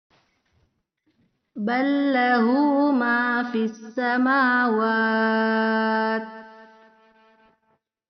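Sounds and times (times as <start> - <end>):
denoised karaoke recording: 1.6 - 7.1.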